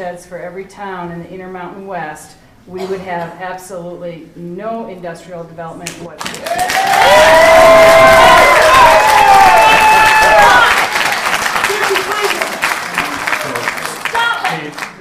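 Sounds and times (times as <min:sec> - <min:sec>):
speech: 0:00.0 - 0:08.2
large crowd applauding at a meeting: 0:06.2 - 0:14.9.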